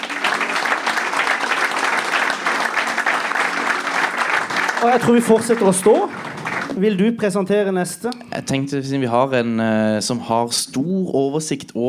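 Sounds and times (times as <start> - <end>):
audience applause: 0.0 - 7.0
speech: 4.8 - 11.8.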